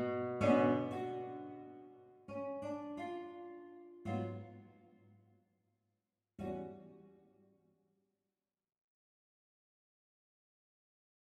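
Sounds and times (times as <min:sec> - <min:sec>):
guitar: 0:00.0 - 0:05.2, 0:06.4 - 0:07.4.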